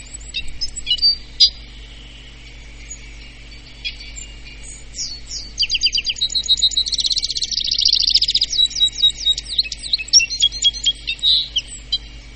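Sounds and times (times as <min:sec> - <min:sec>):
osetnik bird singing: 0:00.0 - 0:12.3.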